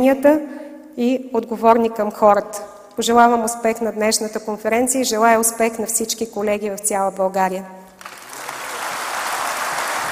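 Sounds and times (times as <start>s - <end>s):
speech: 0.0s - 7.8s
audience applause at a political party conference: 8.0s - 10.1s.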